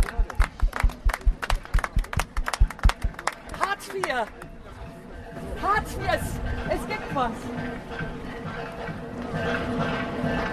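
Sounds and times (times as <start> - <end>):
rhythmic audience clapping: 0.0 - 4.5
speech: 4.0 - 4.4, 5.6 - 10.5.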